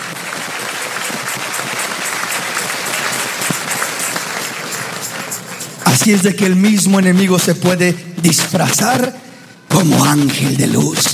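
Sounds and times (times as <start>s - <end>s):
audience applauding: 0.0s - 7.0s
speech: 6.0s - 11.1s.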